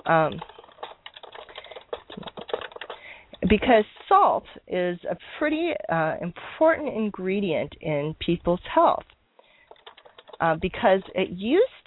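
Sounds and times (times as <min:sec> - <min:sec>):
person typing a question on a computer keyboard: 0:00.0 - 0:03.4, 0:09.4 - 0:11.2
speech: 0:00.1 - 0:00.5, 0:03.5 - 0:09.1, 0:10.4 - 0:11.8.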